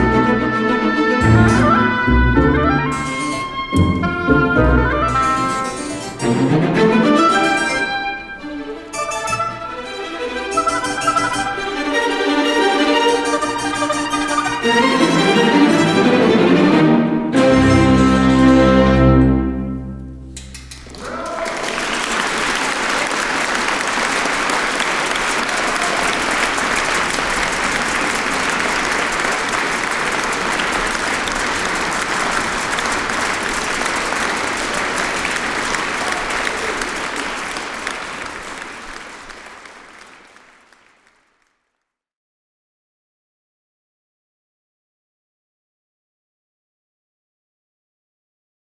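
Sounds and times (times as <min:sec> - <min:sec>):
oboe: 0:00.0 - 0:16.3
harpsichord: 0:00.0 - 0:20.8
string ensemble: 0:00.0 - 0:39.4.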